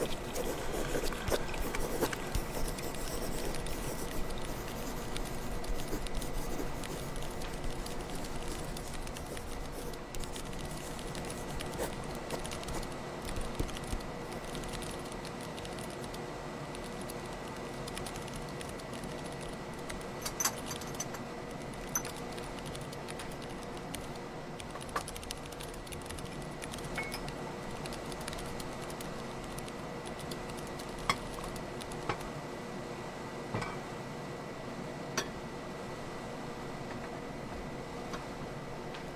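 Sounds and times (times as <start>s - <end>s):
handwriting: 0.0s - 14.5s
faint constant hum: 0.0s - 39.1s
typing: 0.1s - 21.1s, 21.7s - 32.2s.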